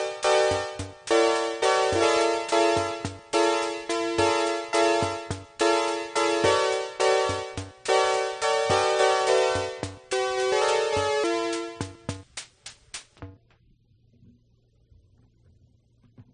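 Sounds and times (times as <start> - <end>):
P600 synth playing fourths: 0.0 - 12.3.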